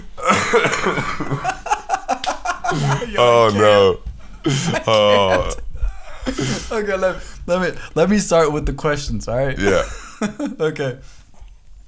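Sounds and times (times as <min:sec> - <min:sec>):
person coughing: 0:00.2 - 0:01.4, 0:04.5 - 0:05.6
laughter: 0:00.2 - 0:07.1
speech: 0:00.5 - 0:01.6, 0:02.7 - 0:05.6, 0:06.2 - 0:11.2.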